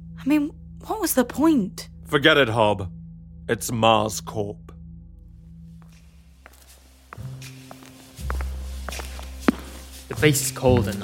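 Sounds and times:
speech: 0:00.2 - 0:04.7, 0:10.2 - 0:11.0
shoes striking a hard floor on a base at night: 0:05.8 - 0:11.0.

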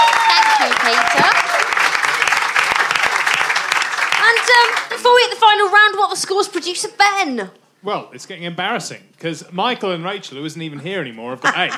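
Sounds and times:
quiz-show studio audience round of applause: 0:00.0 - 0:05.3
speech: 0:05.0 - 0:11.7
laughter: 0:11.3 - 0:11.7.

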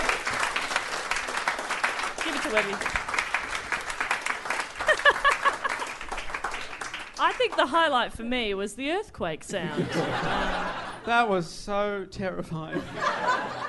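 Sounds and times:
applause: 0:00.0 - 0:07.9
speech: 0:02.4 - 0:03.0, 0:07.2 - 0:13.6
laughter: 0:04.8 - 0:06.1, 0:09.5 - 0:11.2, 0:12.7 - 0:13.6.

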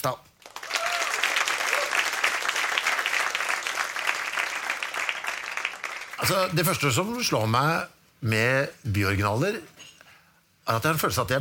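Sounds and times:
speech: 0:00.0 - 0:00.3, 0:06.2 - 0:09.7, 0:10.7 - 0:11.3
crowd applause: 0:00.4 - 0:06.5.

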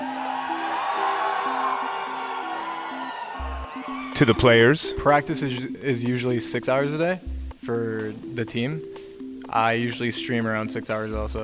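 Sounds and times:
roaring crowd cheering at an esports event: 0:00.0 - 0:04.9
sustained musical notes: 0:00.0 - 0:11.4
speech: 0:04.2 - 0:11.4.

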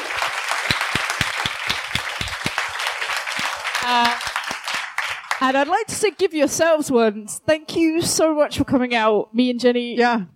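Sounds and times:
audience applause: 0:00.0 - 0:06.1
speech: 0:03.8 - 0:04.2, 0:05.4 - 0:10.3.

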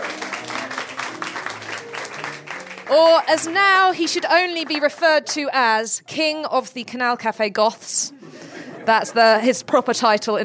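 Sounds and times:
audience applause: 0:00.0 - 0:05.4
speech: 0:02.9 - 0:08.2, 0:08.8 - 0:10.4
laughter: 0:08.1 - 0:09.6.

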